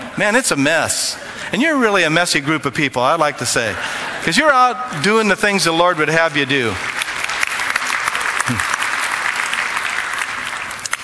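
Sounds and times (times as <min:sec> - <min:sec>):
speech: 0:00.2 - 0:07.0, 0:08.5 - 0:08.7
audience applause: 0:05.8 - 0:11.0.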